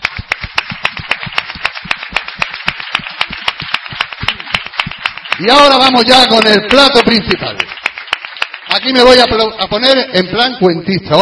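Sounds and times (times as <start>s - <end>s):
audience clapping in rhythm for a show's tenth anniversary: 0.0s - 10.3s
speech: 5.4s - 7.8s, 8.7s - 11.2s.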